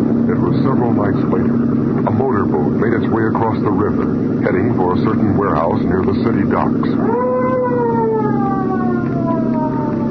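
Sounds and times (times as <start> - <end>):
speech: 0.5 - 7.8
police boat siren: 7.0 - 10.0.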